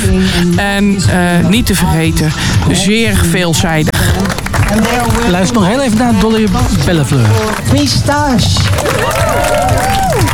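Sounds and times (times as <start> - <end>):
speech: 0.6 - 10.3
audience applause: 4.0 - 10.3.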